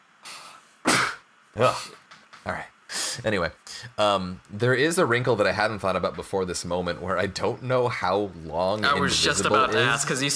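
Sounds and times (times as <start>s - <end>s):
person sneezing: 0.3s - 2.0s
speech: 1.6s - 10.3s.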